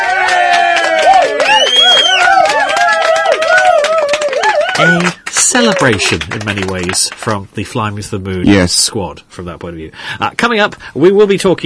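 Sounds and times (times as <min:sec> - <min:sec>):
applause: 0:00.0 - 0:07.4
speech: 0:04.8 - 0:05.0, 0:05.8 - 0:11.6.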